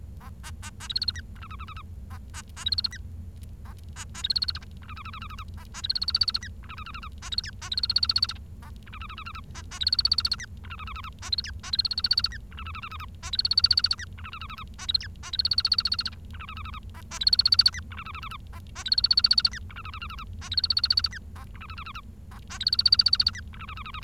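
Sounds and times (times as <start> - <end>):
Bengalese finch calling: 0.2 - 3.0, 3.6 - 24.0.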